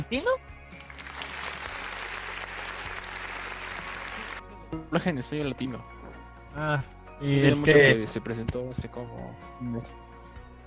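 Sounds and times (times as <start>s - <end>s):
speech: 0.0s - 0.8s, 4.7s - 5.9s, 6.6s - 10.0s
applause: 0.7s - 4.4s.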